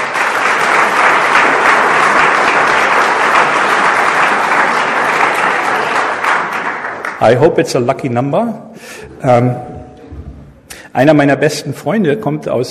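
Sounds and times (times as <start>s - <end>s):
audience applause: 0.0s - 7.5s
speech: 7.2s - 9.7s, 10.9s - 12.6s.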